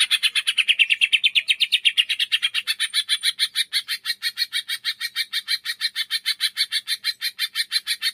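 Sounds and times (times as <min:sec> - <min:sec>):
caged leafbird singing vigorously: 0:00.0 - 0:08.1.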